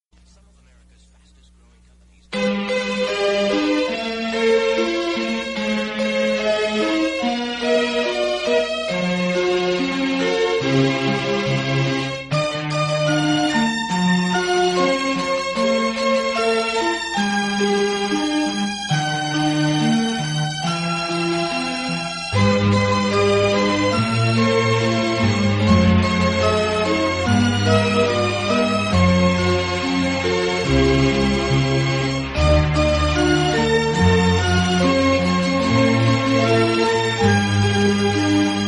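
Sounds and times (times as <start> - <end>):
instrumental variations music: 0.1 - 38.6.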